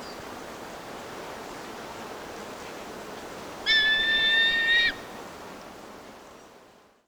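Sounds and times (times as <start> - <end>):
Solitary Eagle in South America: 3.6 - 5.1.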